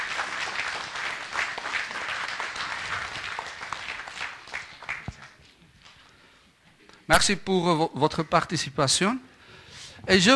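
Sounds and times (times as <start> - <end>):
audience applause: 0.0 - 5.4
speech: 7.1 - 9.3, 10.1 - 10.3.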